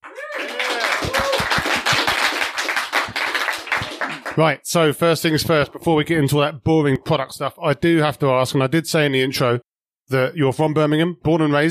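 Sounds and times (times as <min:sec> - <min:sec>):
audience clapping to welcome a guest onto a show: 0:00.0 - 0:04.5
speech: 0:04.4 - 0:11.6.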